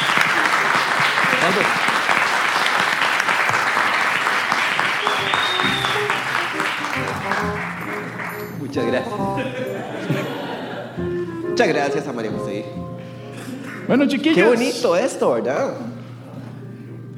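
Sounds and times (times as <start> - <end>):
applause for the newlyweds: 0.0 - 8.6
speech: 1.5 - 1.9, 8.8 - 10.2, 11.0 - 12.9, 13.9 - 15.9
laughter: 4.8 - 11.8.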